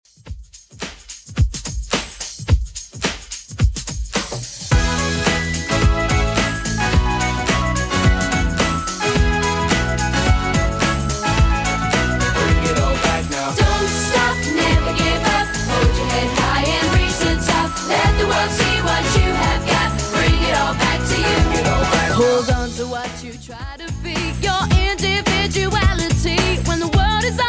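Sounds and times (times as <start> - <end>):
drum beat: 0.1 - 23.0, 23.7 - 27.3.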